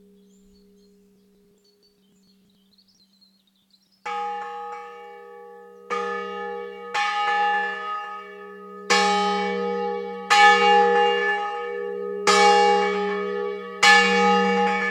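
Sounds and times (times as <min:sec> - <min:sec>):
church bells ringing in San Gregorio di Stellanello, Liguria: 0:04.0 - 0:14.9.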